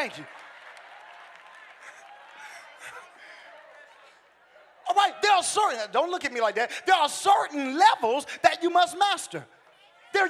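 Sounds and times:
speech: 0:00.0 - 0:00.4, 0:05.0 - 0:10.2
audience applause: 0:00.0 - 0:03.4.

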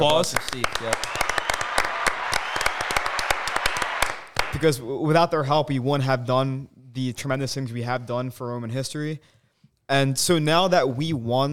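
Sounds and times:
speech: 0:00.0 - 0:01.2, 0:04.6 - 0:11.5
many hands clapping in a round of applause: 0:00.0 - 0:04.8.

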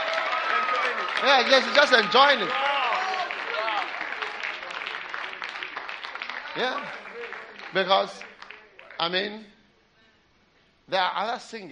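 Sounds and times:
audience applause: 0:00.0 - 0:09.1
speech: 0:01.2 - 0:02.7, 0:06.6 - 0:07.0, 0:07.7 - 0:08.3, 0:09.0 - 0:09.6, 0:10.9 - 0:11.7.

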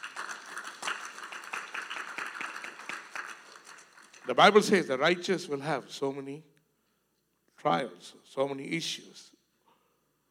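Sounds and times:
audience clapping: 0:00.0 - 0:04.8
speech: 0:04.3 - 0:06.5, 0:07.6 - 0:09.4.

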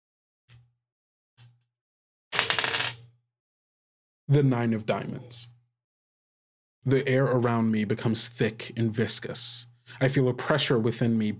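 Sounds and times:
six-sided die rolled for a tabletop card game: 0:02.4 - 0:03.0
speech: 0:04.3 - 0:05.6, 0:06.8 - 0:11.3.

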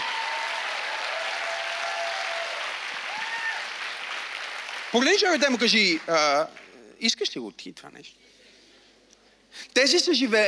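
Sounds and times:
crowd applause: 0:00.0 - 0:06.8
speech: 0:04.9 - 0:08.3, 0:09.5 - 0:10.4.

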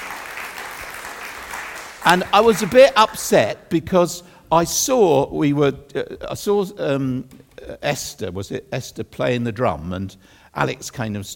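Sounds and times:
audience applause: 0:00.0 - 0:03.4
speech: 0:02.0 - 0:11.3.

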